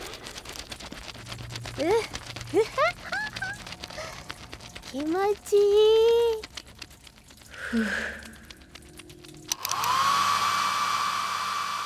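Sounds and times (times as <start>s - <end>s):
rustling and shuffling: 0.0s - 9.9s
speech: 1.8s - 3.1s, 4.9s - 6.4s, 7.7s - 8.2s
hair dryer blowing: 9.5s - 11.8s.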